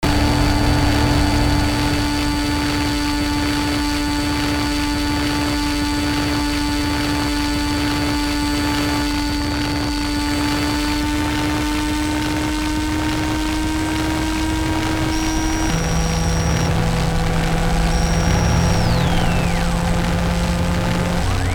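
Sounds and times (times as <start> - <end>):
brainwave tuning tones: 0.0 - 21.5.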